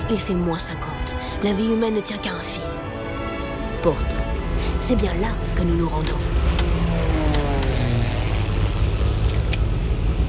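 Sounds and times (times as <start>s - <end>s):
speech: 0.1s - 2.9s, 3.8s - 6.4s
Twin Otter ski plane engine roar: 2.8s - 10.2s.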